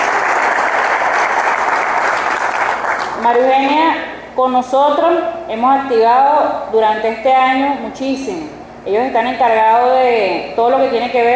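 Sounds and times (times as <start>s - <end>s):
audience applause: 0.0s - 3.2s
speech: 3.2s - 11.3s.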